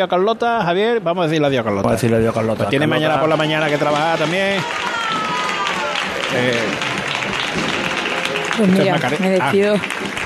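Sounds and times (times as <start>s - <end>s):
speech: 0.0s - 5.3s, 6.3s - 6.9s, 8.6s - 10.0s
applause: 3.0s - 10.2s.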